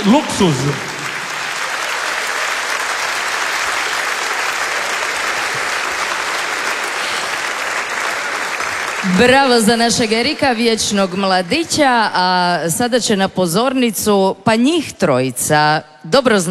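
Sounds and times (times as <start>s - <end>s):
speech: 0.0s - 0.9s, 9.0s - 16.4s
audience applauding an orchestra from Istria and Kvarner: 0.0s - 12.0s.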